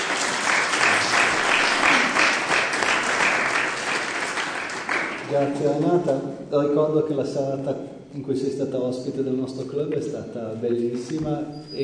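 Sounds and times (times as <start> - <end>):
audience applause: 0.0 - 5.8
speech: 5.3 - 11.8.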